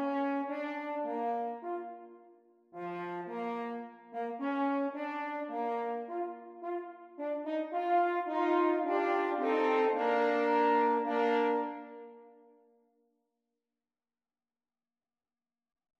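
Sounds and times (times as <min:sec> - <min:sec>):
horns duet: 0:00.0 - 0:02.1, 0:02.8 - 0:12.2.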